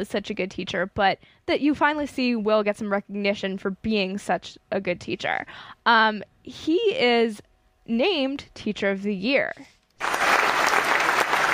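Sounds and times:
speech: 0.0s - 9.7s
applause: 10.0s - 11.5s.

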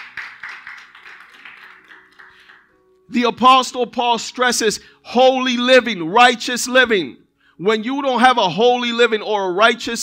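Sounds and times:
church congregation applauding: 0.0s - 2.8s
speech: 3.1s - 10.0s.

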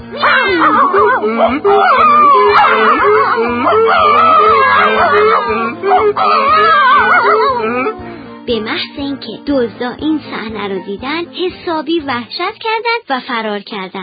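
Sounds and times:
steady pulsing beat: 0.0s - 8.1s
dog crying out: 0.1s - 8.2s
donkey crying out: 0.1s - 8.2s
laughter: 0.2s - 8.0s
cat crying out: 0.2s - 8.1s
rooster crying out: 0.4s - 7.7s
speech: 1.2s - 14.0s.

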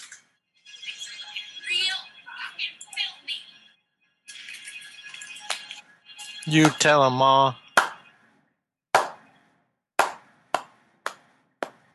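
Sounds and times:
speech: 6.5s - 7.6s
slow hand claps: 7.8s - 8.0s, 9.0s - 9.2s, 10.0s - 11.8s.

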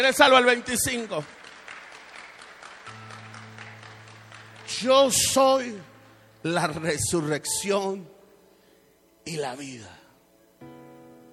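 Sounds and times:
speech: 0.0s - 1.4s, 4.8s - 8.1s, 9.2s - 10.0s
audience applauding: 0.5s - 5.7s.

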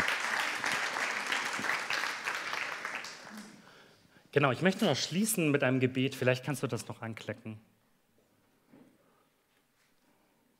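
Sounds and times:
audience applause: 0.0s - 3.6s
speech: 4.4s - 7.7s.

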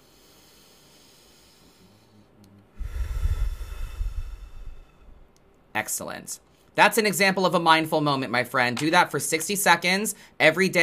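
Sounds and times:
deep inhale through the nose: 0.0s - 5.3s
speech: 5.8s - 10.8s.

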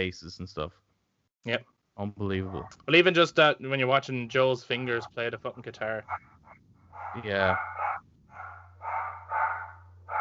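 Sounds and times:
speech: 0.0s - 6.4s, 7.0s - 7.8s
steady low hum: 4.6s - 10.2s
dogs barking: 6.0s - 10.2s.

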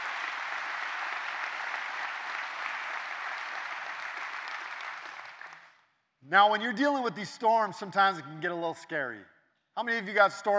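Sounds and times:
audience applause for police officers: 0.0s - 5.8s
speech: 6.3s - 10.5s.

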